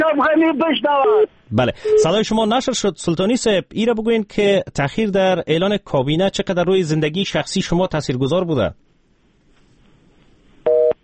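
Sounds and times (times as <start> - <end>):
speech: 0.0 - 8.8
telephone busy-signal beep after call dropped: 1.8 - 2.2, 10.7 - 11.0.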